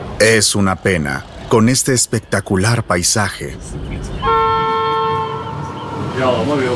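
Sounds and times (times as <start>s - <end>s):
speech: 0.2s - 4.1s, 6.2s - 6.7s
passenger train horn blast: 4.2s - 6.4s.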